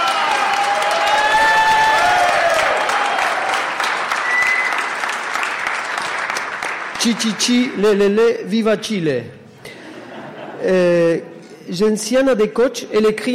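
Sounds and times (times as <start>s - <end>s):
audience applause: 0.0s - 7.6s
speech: 7.0s - 9.4s, 10.6s - 13.3s
laughter: 9.6s - 11.2s.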